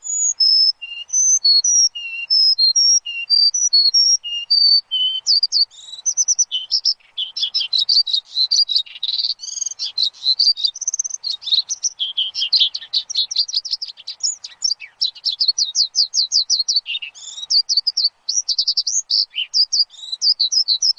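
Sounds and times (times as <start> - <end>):
Javan bush lark singing on a lure recording: 0.0 - 20.9.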